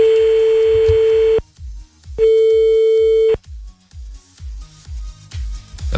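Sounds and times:
telephone ringback tones of an unanswered call: 0:00.0 - 0:01.4, 0:02.2 - 0:03.4.

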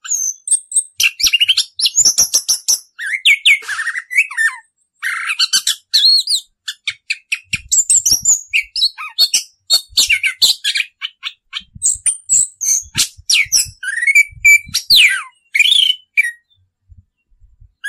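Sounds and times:
Orange-headed thrush song: 0:00.0 - 0:17.8.

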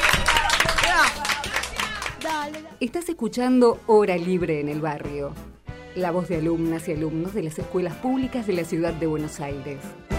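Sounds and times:
applause: 0:00.0 - 0:02.8
speech: 0:02.4 - 0:10.1.

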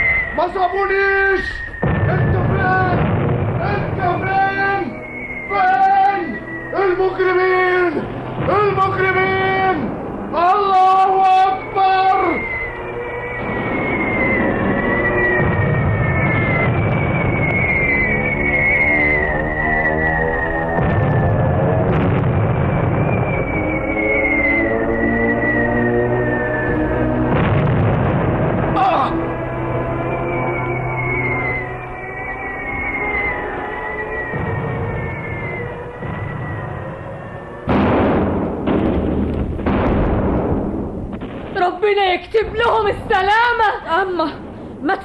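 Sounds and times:
falling whistling tones: 0:00.0 - 0:09.5, 0:10.7 - 0:27.3, 0:28.8 - 0:37.7
speech: 0:00.4 - 0:02.9, 0:06.9 - 0:12.0, 0:42.9 - 0:44.4
artillery cannon fire and explosions: 0:01.6 - 0:31.7, 0:32.4 - 0:45.0.

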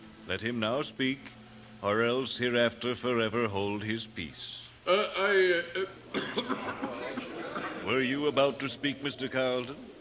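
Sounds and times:
speech: 0:00.3 - 0:09.9
laughter: 0:04.9 - 0:09.6
man coughing during a wedding ceremony: 0:06.1 - 0:07.9.

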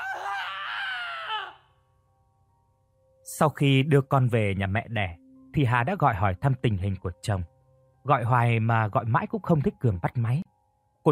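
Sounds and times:
man screaming in extreme pain from limbs being wrenched backward: 0:00.0 - 0:01.7
speech: 0:03.4 - 0:11.0.

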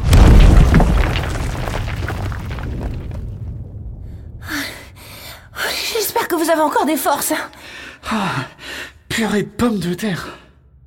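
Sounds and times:
huge boulder crashing down: 0:00.0 - 0:04.5
speech: 0:06.5 - 0:10.4.

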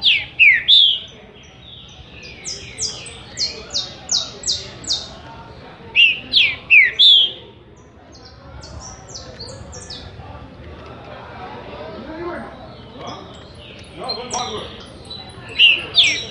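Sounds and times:
green-winged saltator singing rich slurred whistled notes: 0:00.0 - 0:05.1, 0:06.0 - 0:07.4, 0:12.7 - 0:16.3.

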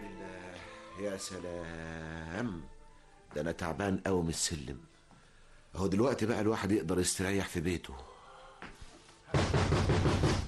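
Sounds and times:
speech: 0:01.0 - 0:05.0, 0:05.7 - 0:08.1
heavy pounding on a house door: 0:09.3 - 0:10.4.

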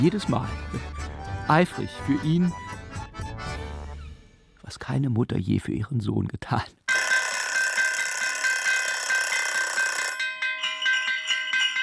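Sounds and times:
speech: 0:00.0 - 0:02.7, 0:04.7 - 0:06.8
kitchen timer ringing in a rural kitchen in central France: 0:06.9 - 0:11.8.

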